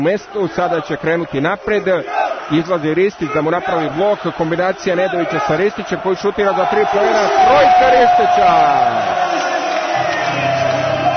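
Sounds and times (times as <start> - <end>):
speech: 0.0 - 9.4
basketball fans cheering and celebrating: 0.0 - 11.1
basketball fans shouting and whooping: 3.2 - 11.1.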